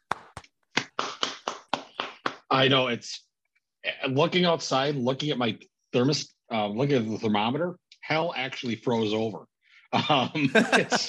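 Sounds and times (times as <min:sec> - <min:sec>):
hand clapping: 0:00.0 - 0:02.5
speech: 0:02.6 - 0:11.0
laughter: 0:10.0 - 0:11.0.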